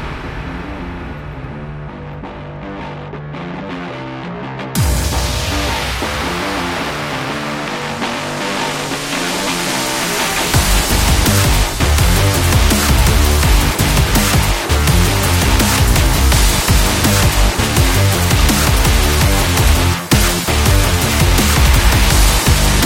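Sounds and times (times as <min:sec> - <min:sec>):
extreme energetic sports training music: 0:01.2 - 0:22.8.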